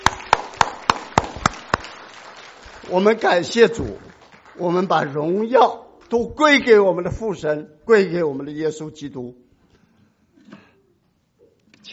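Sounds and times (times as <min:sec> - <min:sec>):
church congregation clapping in unison: 0:00.0 - 0:06.4
speech: 0:02.9 - 0:09.4.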